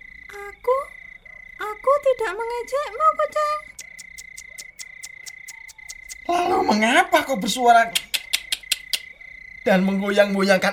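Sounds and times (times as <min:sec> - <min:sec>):
speech: 0:02.1 - 0:03.7, 0:06.3 - 0:08.0, 0:09.6 - 0:10.7
house gecko chirping clicks: 0:03.7 - 0:06.4, 0:07.9 - 0:09.2.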